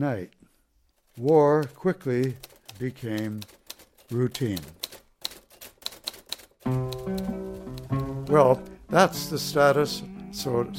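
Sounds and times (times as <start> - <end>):
speech: 0.0 - 0.4, 1.2 - 4.8, 6.6 - 7.3, 8.3 - 10.7
typewriter keystrikes: 1.1 - 8.7.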